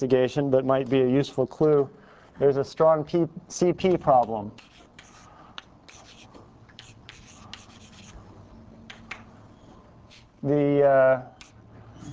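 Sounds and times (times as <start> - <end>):
speech: 0.0 - 4.7, 10.4 - 11.4
equation being written on a board during a physics lecture: 4.2 - 8.2.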